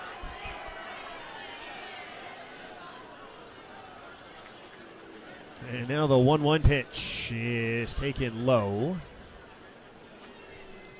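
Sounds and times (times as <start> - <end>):
baseball stadium crowd cheering: 0.0 - 10.9
speech: 5.6 - 9.1.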